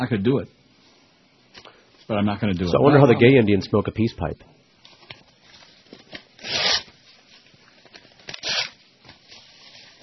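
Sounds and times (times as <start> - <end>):
speech: 0.0 - 0.6, 2.1 - 4.6
paper crackles and rustles: 4.9 - 10.0
paper being torn up by hand: 6.1 - 6.9, 8.2 - 8.8.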